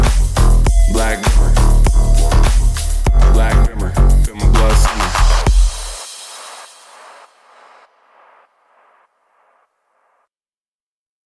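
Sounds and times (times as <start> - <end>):
bass: 0.0 - 5.9.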